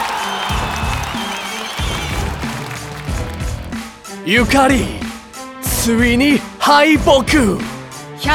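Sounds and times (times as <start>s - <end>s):
applause: 0.0s - 4.1s
speech: 4.2s - 5.0s, 5.8s - 8.3s.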